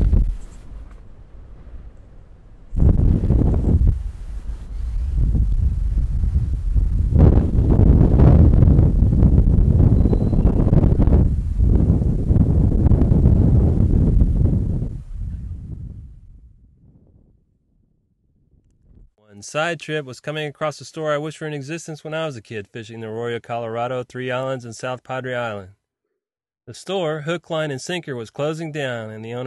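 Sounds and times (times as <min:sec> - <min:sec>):
strong wind over choppy water: 0:00.0 - 0:19.2
speech: 0:19.5 - 0:25.8, 0:26.7 - 0:29.4.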